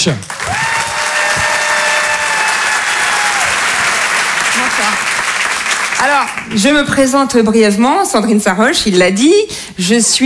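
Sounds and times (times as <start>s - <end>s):
speech: 0.0s - 0.3s, 6.0s - 10.2s
audience applause: 0.0s - 7.2s.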